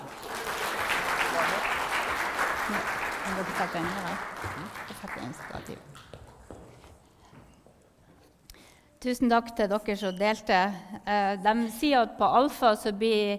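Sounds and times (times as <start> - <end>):
audience applause: 0.0 - 5.9
speech: 2.7 - 6.2, 9.0 - 13.3.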